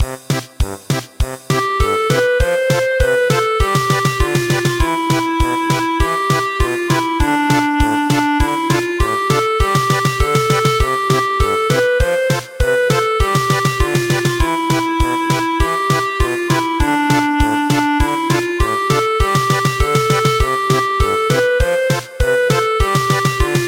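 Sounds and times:
German polka music: 0.0 - 23.6.

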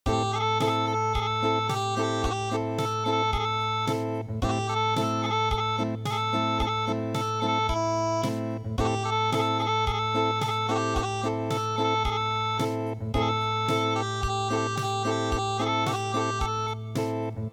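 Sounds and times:
acoustic music: 0.1 - 17.5.

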